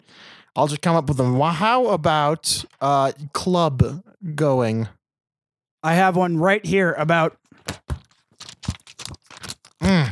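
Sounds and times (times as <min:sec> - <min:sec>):
speech: 0:00.6 - 0:05.0, 0:05.8 - 0:07.8
thick paper notebook being handled: 0:07.5 - 0:10.1.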